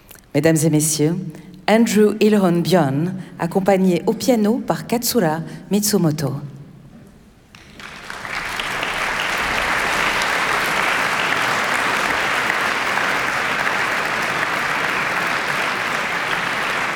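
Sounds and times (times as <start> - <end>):
speech: 0.4 - 6.5
concert audience applause: 7.6 - 16.9.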